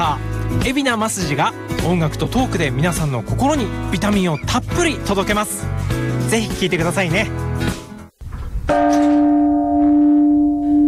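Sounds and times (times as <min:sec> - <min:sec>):
speech: 0:00.5 - 0:07.8
rustling noise: 0:08.1 - 0:08.8
large World Peace Bell ringing: 0:08.7 - 0:10.8.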